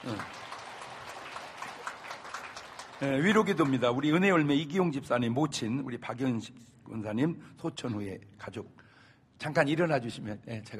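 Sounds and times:
speech: 0.0 - 0.4, 3.0 - 8.8, 9.4 - 10.7
audience applauding: 0.0 - 4.4.

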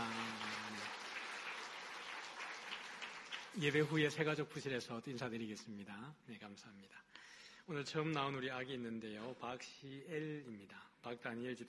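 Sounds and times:
crowd applauding to welcome newcomers: 0.0 - 4.3
speech: 3.6 - 11.6.

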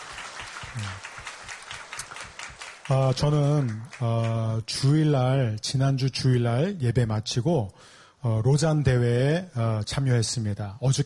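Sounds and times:
audience applause: 0.0 - 4.5
speech: 2.9 - 11.0.

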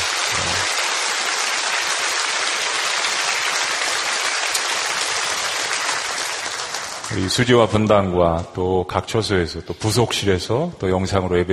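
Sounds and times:
audience applause: 0.0 - 7.9
speech: 7.2 - 11.5.

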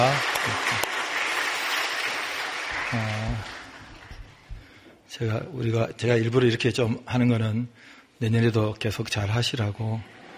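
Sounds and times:
crowd applause: 0.0 - 4.5
speech: 2.9 - 3.6, 5.2 - 10.2.

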